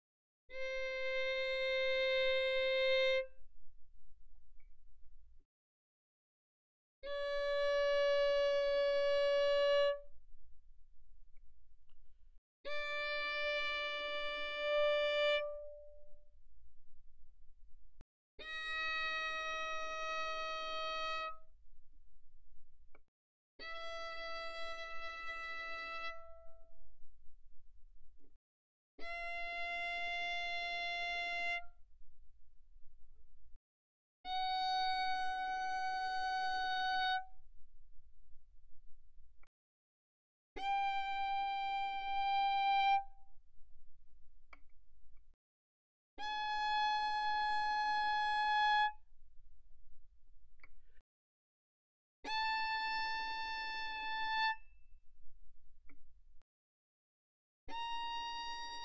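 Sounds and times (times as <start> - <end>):
violin bowed mezzo forte on the D string: 0.5 - 3.5, 7.0 - 10.2, 12.7 - 16.3, 18.4 - 21.6, 23.6 - 26.8, 29.0 - 31.9, 34.3 - 37.5, 40.6 - 43.4, 46.2 - 49.1, 52.3 - 55.2, 57.7 - 58.8.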